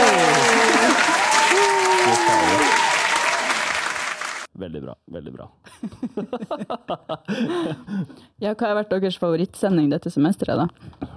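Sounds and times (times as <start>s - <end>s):
applause: 0.0s - 4.5s
speech: 4.7s - 11.1s.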